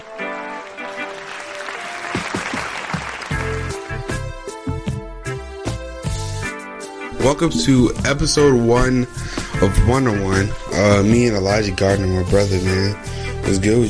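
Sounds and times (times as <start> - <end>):
round of applause from a crowd: 0.0 - 4.6
loud upbeat music with punchy beats: 2.1 - 13.8
speech: 7.2 - 13.8.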